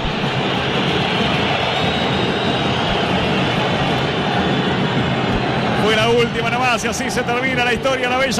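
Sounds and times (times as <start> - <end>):
massive stadium crowd whistling in disapproval: 0.0 - 6.5
speech: 6.2 - 8.3.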